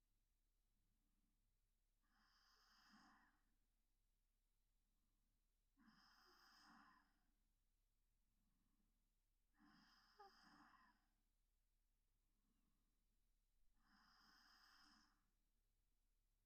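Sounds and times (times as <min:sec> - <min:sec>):
sleeping breaths for sleep induction: 0:02.1 - 0:03.3, 0:05.8 - 0:07.2, 0:09.6 - 0:11.0, 0:13.8 - 0:15.2.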